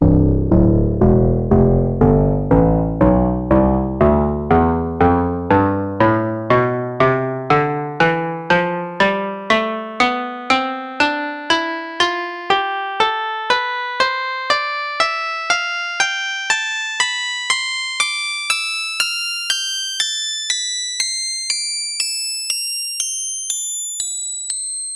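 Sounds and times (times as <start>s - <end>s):
koto playing a scale: 0.5s - 18.3s.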